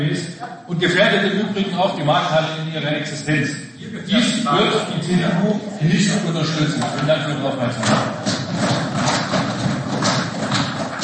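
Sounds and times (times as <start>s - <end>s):
speech: 0.0s - 8.2s
audience knocking hard on new tables in a council chamber: 7.8s - 11.0s.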